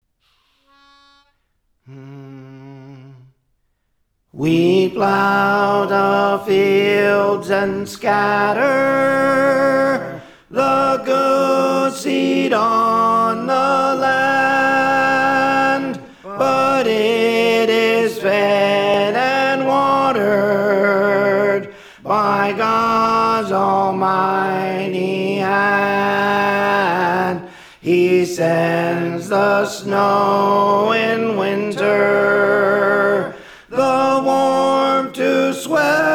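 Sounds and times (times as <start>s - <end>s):
tenor singing: 4.4s - 36.1s.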